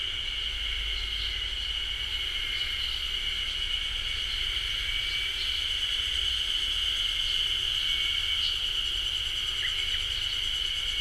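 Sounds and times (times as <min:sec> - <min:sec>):
Ezo haru cicadas buzzing chorus: 0:00.0 - 0:10.9.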